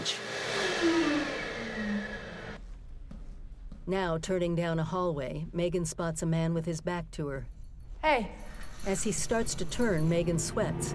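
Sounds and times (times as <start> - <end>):
motion sensor hand dryer blowing: 0.0 - 2.6
speech: 3.9 - 10.9.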